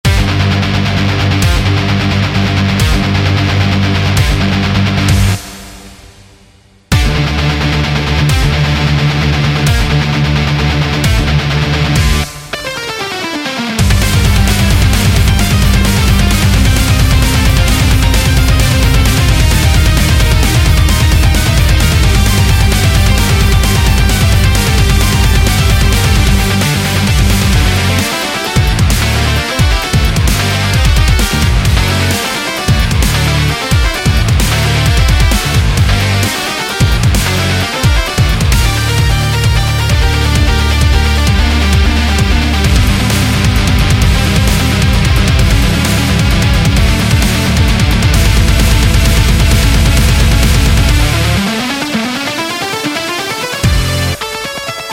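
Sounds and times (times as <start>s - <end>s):
epic sport metal rock music: 0.0s - 54.9s.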